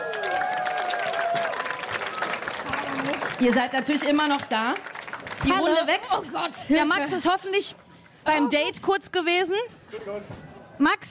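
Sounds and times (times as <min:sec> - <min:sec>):
audience applause: 0:00.0 - 0:06.2
speech: 0:03.4 - 0:11.1.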